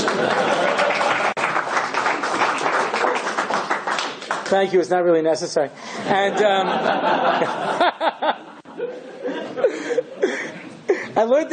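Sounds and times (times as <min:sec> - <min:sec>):
laughter: 0:00.0 - 0:01.4, 0:06.0 - 0:11.3
audience applause after a lecture: 0:00.0 - 0:04.7
speech: 0:04.5 - 0:08.4, 0:11.2 - 0:11.5.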